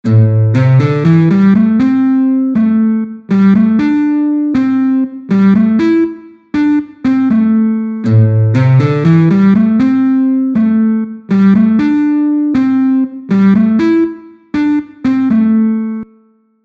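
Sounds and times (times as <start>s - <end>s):
musical riff: 0.0s - 16.2s.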